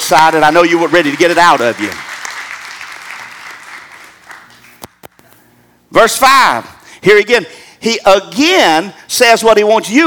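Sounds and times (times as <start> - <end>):
audience hand clapping: 0.0 - 5.2
speech: 0.1 - 2.1, 5.9 - 10.0.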